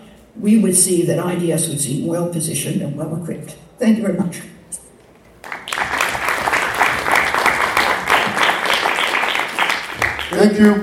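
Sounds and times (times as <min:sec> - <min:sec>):
speech: 0:00.4 - 0:04.6, 0:10.3 - 0:10.8
applause: 0:05.4 - 0:10.8.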